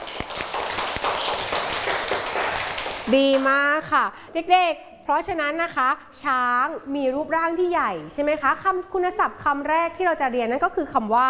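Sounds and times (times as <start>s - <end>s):
children clapping hands: 0.0s - 3.5s
speech: 3.1s - 11.2s.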